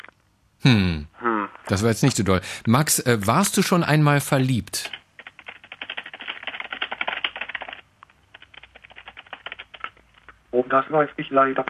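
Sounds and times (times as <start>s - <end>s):
speech: 0.6s - 1.1s, 1.7s - 5.0s, 10.7s - 11.6s
typing a question on a computer keyboard: 4.8s - 10.4s.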